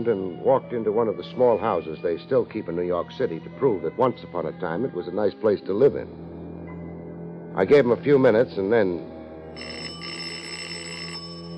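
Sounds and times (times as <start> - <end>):
speech: 0.0 - 6.3, 7.6 - 9.9
electric doorbell ringing: 9.6 - 11.5.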